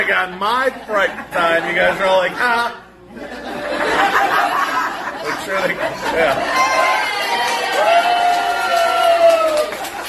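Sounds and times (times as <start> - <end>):
speech: 0.0 - 4.6, 5.2 - 8.0
laughter: 0.0 - 7.7
audience cheering: 6.5 - 10.0.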